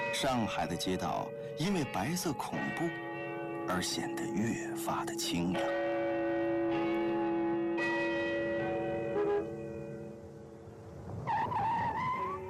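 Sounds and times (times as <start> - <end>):
clock tower bell tolling: 0.0 - 10.4
speech: 0.1 - 3.0, 3.7 - 5.9
car tires screeching: 11.2 - 12.4.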